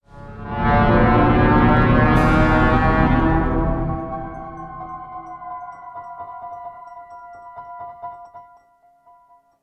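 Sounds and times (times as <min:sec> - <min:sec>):
thriller scary brass music: 0:00.0 - 0:06.2.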